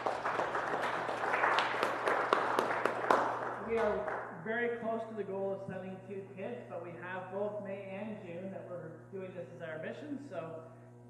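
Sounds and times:
audience applause: 0.0s - 4.3s
speech: 3.8s - 10.8s.

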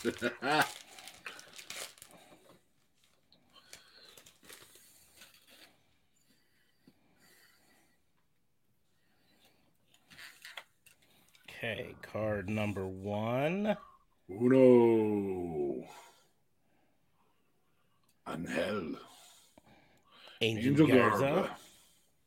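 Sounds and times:
speech: 0.0s - 0.9s, 12.0s - 16.0s, 18.4s - 19.1s, 20.4s - 21.6s
trading card pack wrapper crinkling: 0.0s - 5.6s.

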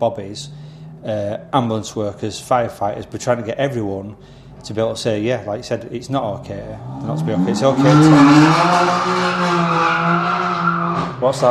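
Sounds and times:
speech: 0.0s - 11.4s
BMW M3 car tire squeal: 6.8s - 11.4s.

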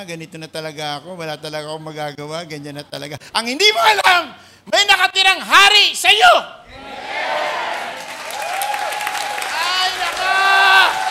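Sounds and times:
speech: 0.0s - 6.9s
weak audience applause: 7.6s - 11.0s.

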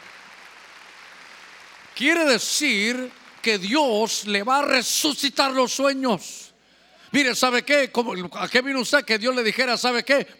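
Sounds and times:
audience clapping: 0.0s - 4.8s
speech: 2.0s - 6.5s, 7.1s - 10.3s.

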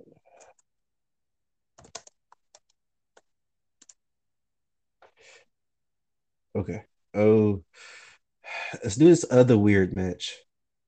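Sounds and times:
typing on a computer keyboard: 1.8s - 4.0s
speech: 6.6s - 8.0s, 8.7s - 10.5s.

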